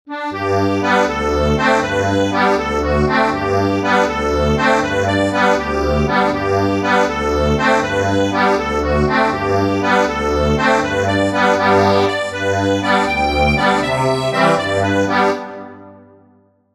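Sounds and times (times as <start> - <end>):
accordion: 0.1 - 16.2.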